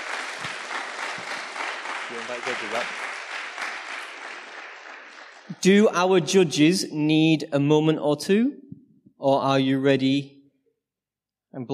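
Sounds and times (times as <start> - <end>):
audience applause: 0.0 - 5.8
speech: 2.1 - 3.0, 5.6 - 8.6, 9.2 - 10.4, 11.6 - 11.7.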